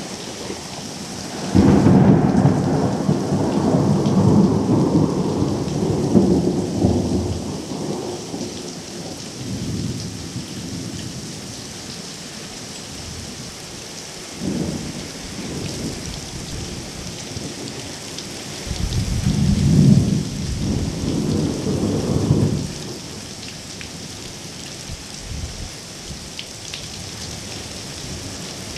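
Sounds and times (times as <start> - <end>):
thunderstorm: 0.0 - 11.0, 14.4 - 23.3, 24.9 - 26.2.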